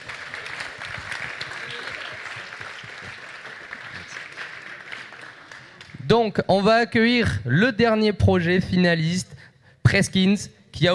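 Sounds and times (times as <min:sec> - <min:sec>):
audience clapping at a startup pitch competition: 0:00.0 - 0:06.1
speech: 0:06.1 - 0:09.3, 0:09.9 - 0:10.9.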